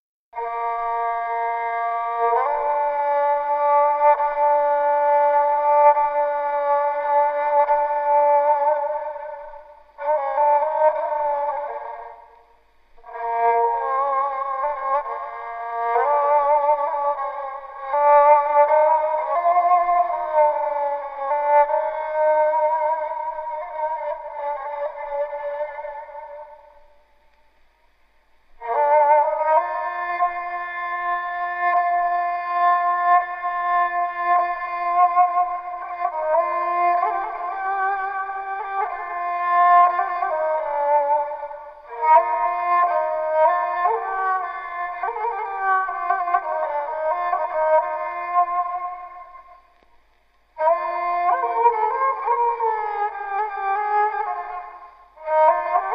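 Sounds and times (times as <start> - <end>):
classical kemence playing folk tunes: 0.4 - 55.9.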